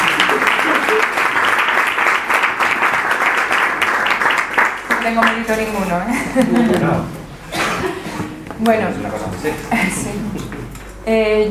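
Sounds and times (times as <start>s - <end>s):
laughter: 0.0s - 1.5s, 6.1s - 8.4s
audience applause at a book presentation: 0.0s - 5.5s
speech: 5.1s - 7.2s, 8.6s - 11.4s.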